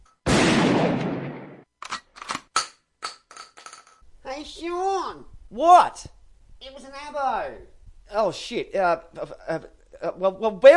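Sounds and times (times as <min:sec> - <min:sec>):
gunshot fired in a backyard: 0:00.2 - 0:01.7
speech: 0:04.5 - 0:10.7.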